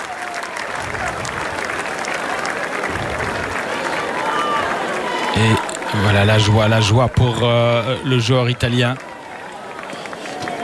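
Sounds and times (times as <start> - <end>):
applause as player leaves court: 0.0 - 10.6
speech: 5.4 - 9.1.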